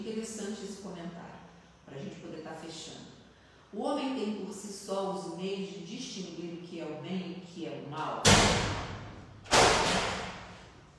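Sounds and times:
speech: 0.0 - 10.2
door slamming shut: 8.2 - 10.6.

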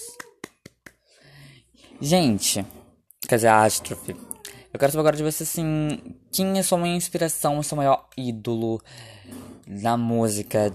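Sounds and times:
hands clapping: 0.0 - 1.1
speech: 2.0 - 10.7.

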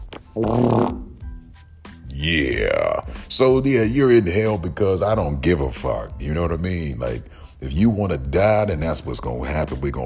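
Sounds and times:
fart: 0.3 - 1.2
speech: 0.4 - 1.1, 2.2 - 10.0.

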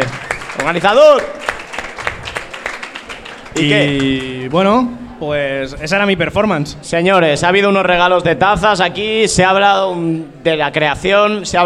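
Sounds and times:
speech: 0.0 - 1.4, 3.6 - 11.6
audience applause: 0.0 - 4.7.

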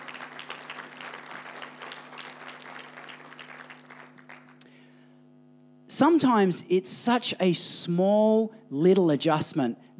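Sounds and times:
audience applause: 0.0 - 4.6
speech: 5.9 - 9.9.

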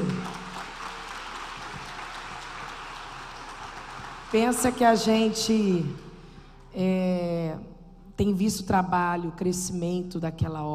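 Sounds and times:
audience applause: 0.0 - 5.1
speech: 4.3 - 6.0, 6.8 - 10.7.

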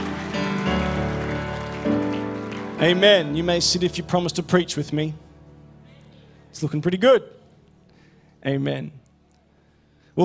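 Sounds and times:
audience clapping: 0.0 - 4.2
speech: 2.8 - 5.2, 6.5 - 7.4, 8.4 - 9.0.

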